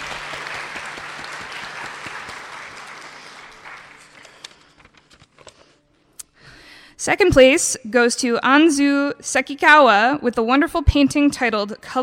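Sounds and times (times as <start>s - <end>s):
audience applause: 0.0s - 5.0s
speech: 7.0s - 12.0s.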